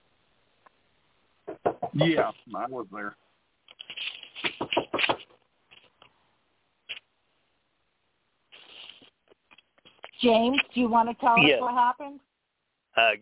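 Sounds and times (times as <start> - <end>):
knocking on a door: 1.5 - 2.0
speech: 2.0 - 3.2, 10.2 - 12.3, 13.0 - 13.2.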